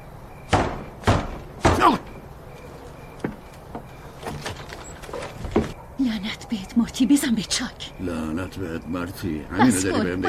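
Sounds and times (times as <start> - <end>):
speech: 1.8 - 2.1, 6.5 - 10.2
door knocks and rattles: 3.2 - 5.8
laughter: 9.4 - 10.2.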